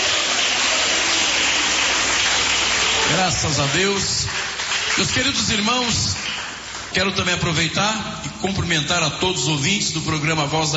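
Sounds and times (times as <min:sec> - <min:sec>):
Pentecostal church congregation clapping at Igreja Pentecostal Deus é Amor: 0:00.0 - 0:08.0
speech: 0:03.1 - 0:04.4, 0:05.0 - 0:06.2, 0:06.9 - 0:10.7.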